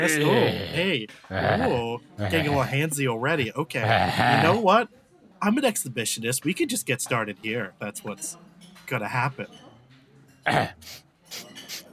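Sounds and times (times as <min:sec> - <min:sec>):
speech: 0:00.0 - 0:09.6, 0:10.4 - 0:11.8
cough or throat clearing: 0:10.4 - 0:11.0.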